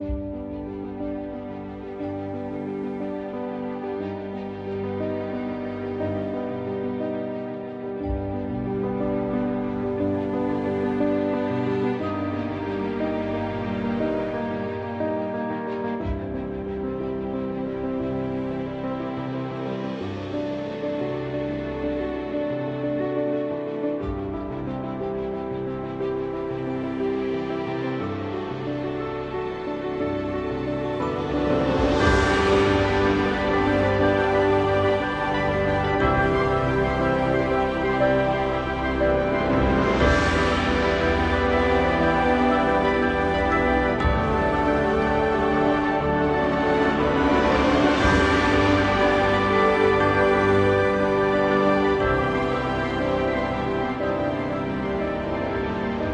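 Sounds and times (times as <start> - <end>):
ambient music: 0.0 - 56.1.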